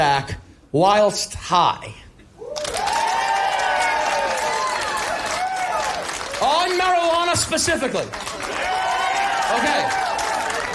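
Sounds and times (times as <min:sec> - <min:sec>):
speech: 0:00.0 - 0:02.0, 0:06.7 - 0:08.8, 0:09.5 - 0:10.0
whoops and cheering voices: 0:02.4 - 0:06.4, 0:08.5 - 0:10.7
audience applause: 0:02.5 - 0:10.7.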